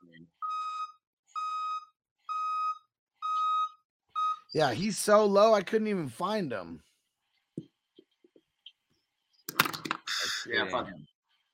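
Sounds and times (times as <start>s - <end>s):
dump truck sound effect electronic beeps: 0.5s - 4.7s
speech: 4.5s - 6.9s, 10.5s - 11.1s.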